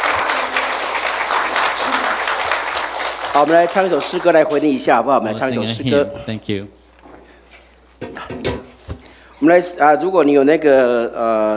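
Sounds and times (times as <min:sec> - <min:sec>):
church congregation applause: 0:00.0 - 0:05.0
speech: 0:03.4 - 0:06.8, 0:09.4 - 0:11.5.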